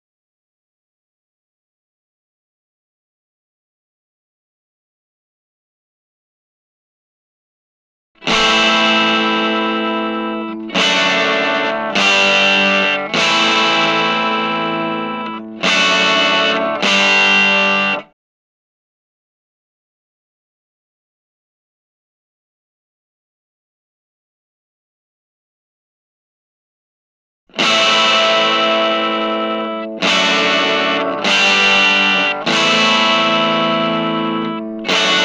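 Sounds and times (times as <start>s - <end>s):
open chords on Tele guitar through Vox AC4TV amplifier: 8.2s - 18.1s, 27.5s - 35.2s.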